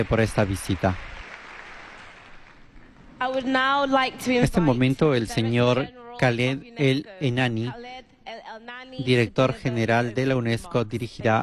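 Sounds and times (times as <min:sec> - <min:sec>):
speech: 0:00.0 - 0:01.1, 0:03.2 - 0:11.4
welcoming applause for the Pope at UNESCO: 0:00.0 - 0:03.1.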